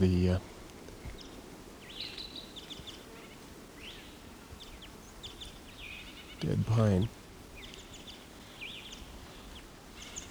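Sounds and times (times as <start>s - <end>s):
speech: 0.0s - 0.5s, 6.4s - 7.2s
male wild bird giving calls: 1.2s - 10.2s
steady low rumble: 6.4s - 7.1s.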